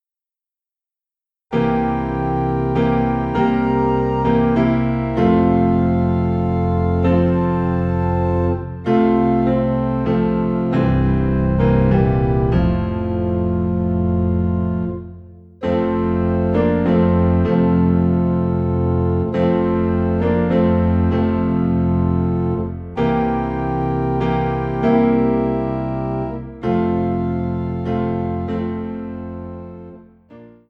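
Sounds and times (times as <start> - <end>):
low organ in F: 1.5 - 30.6
piano in F: 1.5 - 30.6.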